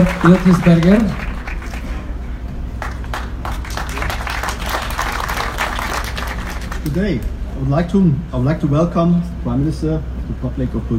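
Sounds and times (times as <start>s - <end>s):
audience clapping: 0.0s - 7.0s
speech: 0.2s - 1.2s, 6.9s - 10.9s.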